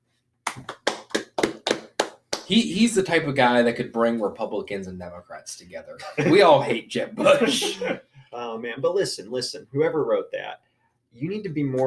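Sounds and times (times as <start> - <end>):
audience clapping: 0.5 - 2.6
speech: 2.5 - 11.8.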